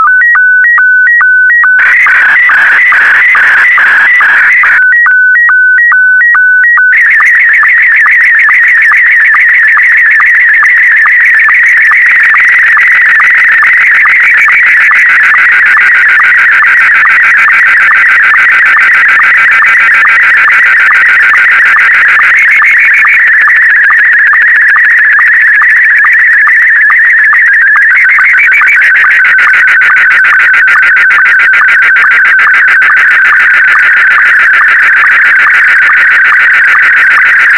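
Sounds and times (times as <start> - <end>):
SSTV signal: 0.0 - 37.5.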